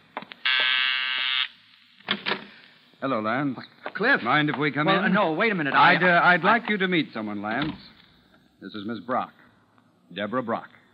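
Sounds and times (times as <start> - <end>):
harsh electric doorbell buzzer: 0.4 - 1.5
speech: 3.0 - 8.0, 8.6 - 9.4, 10.1 - 10.8.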